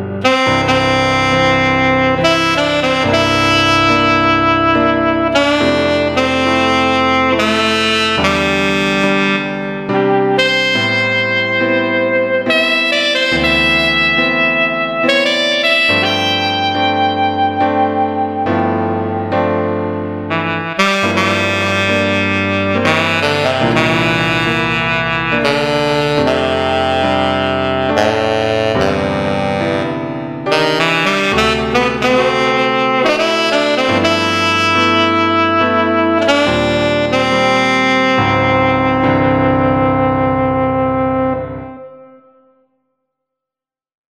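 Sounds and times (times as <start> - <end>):
saxophone playing: 0.2 - 19.6, 20.2 - 42.6.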